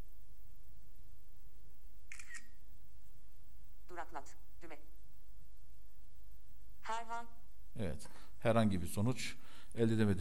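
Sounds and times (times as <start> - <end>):
quiet hiss: 0.0 - 10.1
device camera shutter click: 2.1 - 2.6
speech: 4.1 - 4.4, 7.0 - 10.1.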